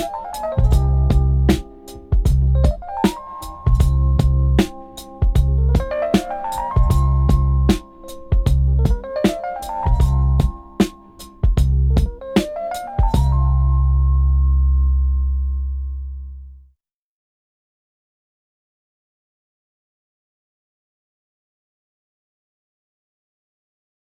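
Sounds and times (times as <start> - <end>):
bass guitar playing: 0.0 - 16.6.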